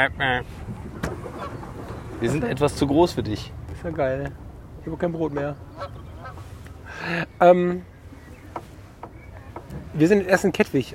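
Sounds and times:
speech: 0:00.0 - 0:00.6, 0:02.2 - 0:06.0, 0:07.0 - 0:07.9, 0:10.0 - 0:10.9
goose honking: 0:05.7 - 0:06.5.

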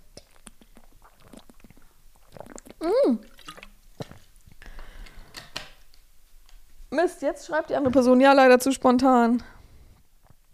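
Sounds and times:
person taking a sip of water: 0:00.0 - 0:05.4
speech: 0:02.8 - 0:03.3, 0:07.0 - 0:09.6.

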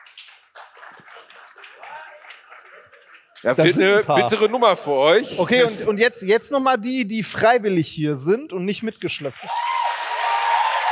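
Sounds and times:
audience clapping: 0:00.0 - 0:04.7, 0:09.2 - 0:10.8
speech: 0:00.8 - 0:09.7.

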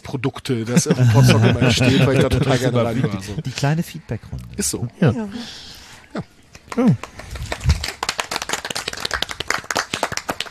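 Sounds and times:
speech: 0:00.1 - 0:07.4
laughter: 0:00.7 - 0:03.6
applause from an audience at Podstock: 0:06.6 - 0:10.4.

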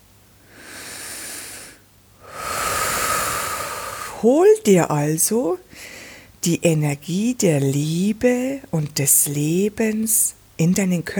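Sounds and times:
slow deep breath in and out: 0:00.4 - 0:04.2, 0:05.7 - 0:06.4
speech: 0:04.2 - 0:11.1.

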